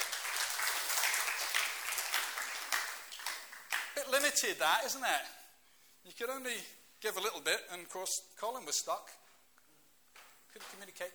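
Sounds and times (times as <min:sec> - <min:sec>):
audience applause: 0:00.0 - 0:04.0
speech: 0:04.1 - 0:05.4, 0:06.0 - 0:09.2, 0:10.6 - 0:11.1.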